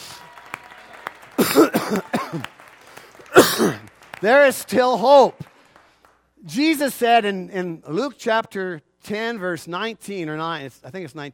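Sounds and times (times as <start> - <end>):
audience clapping: 0.0 - 6.3
speech: 1.5 - 2.5, 3.6 - 5.5, 6.4 - 11.3.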